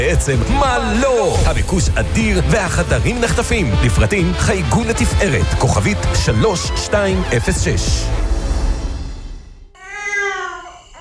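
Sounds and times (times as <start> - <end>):
speech: 0.1 - 8.2
baby crying: 9.8 - 10.9.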